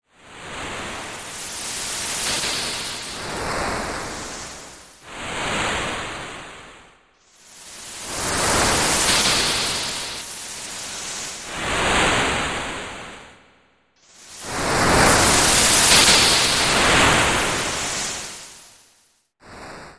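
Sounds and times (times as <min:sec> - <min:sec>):
ocean sound effect: 0:00.2 - 0:06.8, 0:07.4 - 0:13.1, 0:14.2 - 0:18.8.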